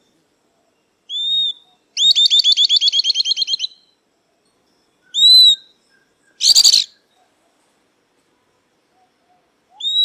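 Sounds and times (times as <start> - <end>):
southern beardless-tyrannulet song: 1.1 - 4.0, 5.0 - 7.2, 9.7 - 10.0.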